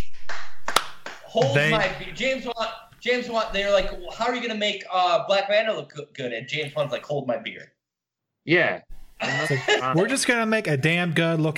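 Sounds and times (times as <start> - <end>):
hand clapping: 0.0 - 2.2
laughter: 1.3 - 2.4, 9.2 - 10.3
speech: 1.3 - 7.8, 8.4 - 11.5.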